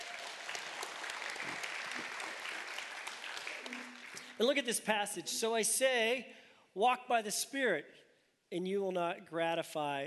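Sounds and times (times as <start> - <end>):
crowd applauding: 0.0 - 4.7
speech: 4.4 - 10.0.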